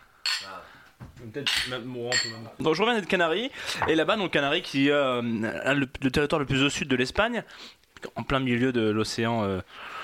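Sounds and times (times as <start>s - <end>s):
glasses clinking in a toast: 0.2s - 0.5s, 1.4s - 2.4s
speech: 0.4s - 10.0s.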